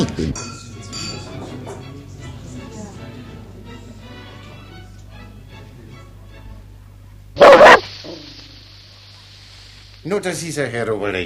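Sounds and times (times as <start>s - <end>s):
speech: 0.2s - 0.6s, 10.1s - 11.2s
dog barking: 7.4s - 8.3s.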